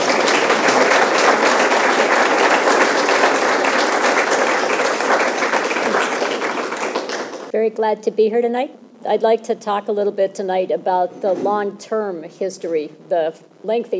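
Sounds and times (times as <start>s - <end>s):
audience applause welcoming a speaker at a lecture event: 0.0s - 7.5s
speech: 7.7s - 13.9s.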